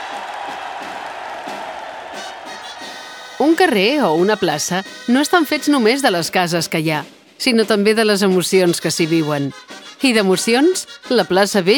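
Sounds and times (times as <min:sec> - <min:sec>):
large outdoor crowd cheering and applauding in town square: 0:00.0 - 0:03.8
speech: 0:03.4 - 0:11.7.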